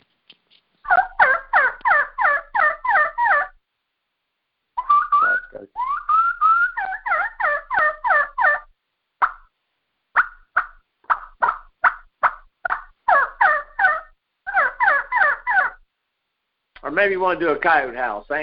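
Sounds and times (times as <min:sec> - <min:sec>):
turkey gobbles produced on a game call: 0:00.8 - 0:03.6, 0:04.8 - 0:09.6, 0:10.2 - 0:15.8
speech: 0:17.0 - 0:18.4.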